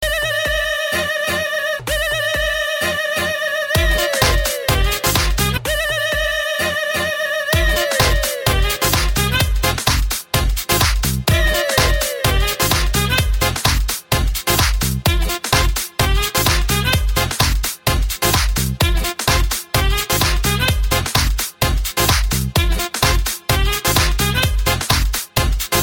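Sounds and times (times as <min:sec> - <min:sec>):
Indian music mix: 0:00.0 - 0:25.8.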